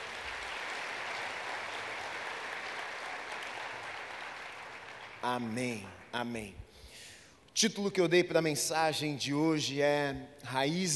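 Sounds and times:
audience applause: 0:00.0 - 0:05.9
speech: 0:05.2 - 0:06.7, 0:07.6 - 0:10.9.

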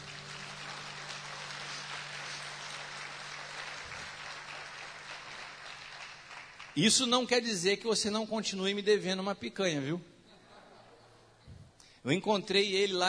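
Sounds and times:
audience applause: 0:00.0 - 0:07.0
speech: 0:06.8 - 0:10.1, 0:12.0 - 0:13.0.

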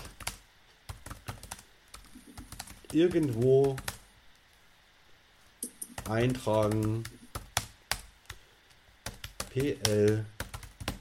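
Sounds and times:
computer keyboard typing: 0:00.0 - 0:04.0, 0:05.6 - 0:08.4, 0:09.0 - 0:10.9
speech: 0:02.9 - 0:03.9, 0:06.1 - 0:07.2, 0:09.6 - 0:10.4.

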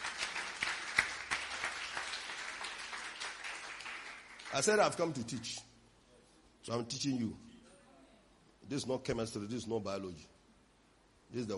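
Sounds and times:
audience clapping: 0:00.0 - 0:05.1
speech: 0:04.5 - 0:05.7, 0:06.6 - 0:07.5, 0:08.7 - 0:10.3, 0:11.3 - 0:11.5.

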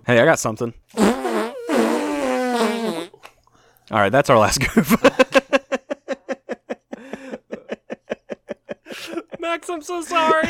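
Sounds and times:
speech: 0:00.0 - 0:01.2, 0:03.9 - 0:05.3, 0:09.7 - 0:10.4
mouth-made fart noise: 0:00.9 - 0:03.4
laughter: 0:04.6 - 0:09.5.

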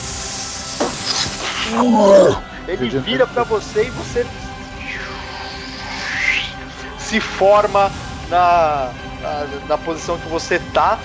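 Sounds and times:
voice imitating a young green dragon spitting acid: 0:00.0 - 0:02.4
speech: 0:01.7 - 0:04.4, 0:07.1 - 0:11.0.

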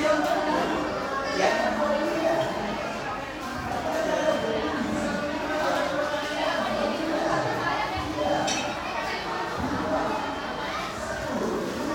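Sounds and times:
cafe chatter: 0:00.0 - 0:11.9
dishes and cutlery clinking: 0:08.4 - 0:08.8.

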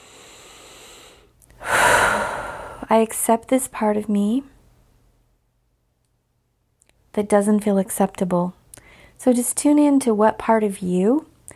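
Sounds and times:
person inhaling deeply during a tapping exercise: 0:00.0 - 0:02.9
speech: 0:02.9 - 0:04.5, 0:07.2 - 0:08.6, 0:09.2 - 0:11.3.

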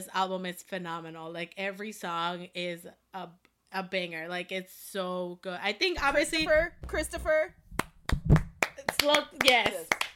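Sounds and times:
speech: 0:00.0 - 0:07.6, 0:09.0 - 0:10.1
hand claps: 0:07.7 - 0:10.1.

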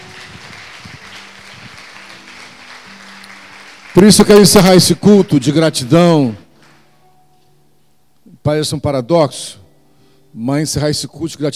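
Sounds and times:
audience applause: 0:00.0 - 0:05.3
speech: 0:04.0 - 0:06.4, 0:08.4 - 0:09.6, 0:10.3 - 0:11.5.

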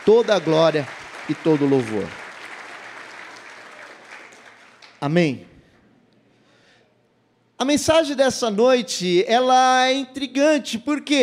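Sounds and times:
speech: 0:00.0 - 0:02.2, 0:05.0 - 0:05.5, 0:07.6 - 0:11.2
audience applause: 0:00.0 - 0:05.1.

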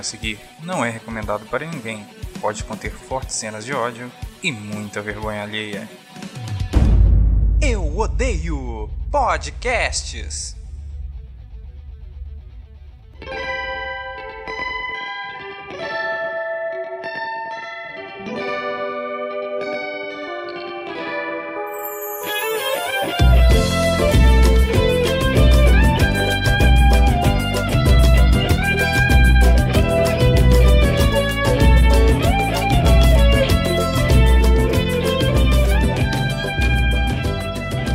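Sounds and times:
speech: 0:00.0 - 0:06.0, 0:07.6 - 0:10.6
Japanese pagode music: 0:21.6 - 0:37.9.

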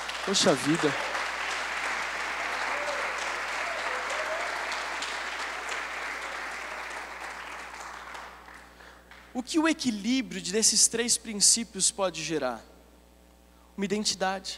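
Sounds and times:
crowd applause: 0:00.0 - 0:09.3
speech: 0:00.2 - 0:01.2, 0:09.4 - 0:12.7, 0:13.8 - 0:14.5.

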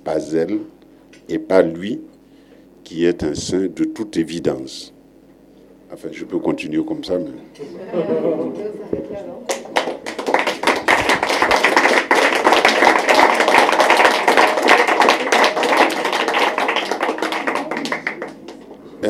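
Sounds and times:
speech: 0:00.0 - 0:02.2, 0:02.8 - 0:05.0, 0:05.9 - 0:10.1
laughter: 0:07.6 - 0:08.9
crowd applause: 0:09.5 - 0:18.7.

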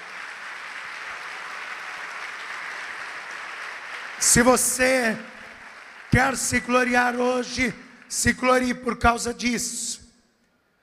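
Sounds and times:
audience applause: 0:00.0 - 0:07.5
speech: 0:04.2 - 0:05.3, 0:06.1 - 0:10.0.

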